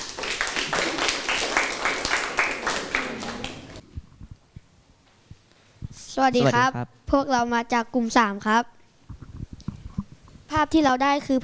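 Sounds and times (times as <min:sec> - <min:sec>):
classroom applause: 0:00.0 - 0:03.8
speech: 0:06.2 - 0:08.8, 0:10.6 - 0:11.4.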